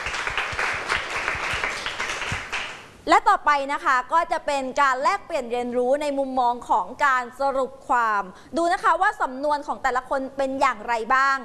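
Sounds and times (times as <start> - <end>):
audience applause: 0.0 - 2.8
speech: 3.1 - 11.4.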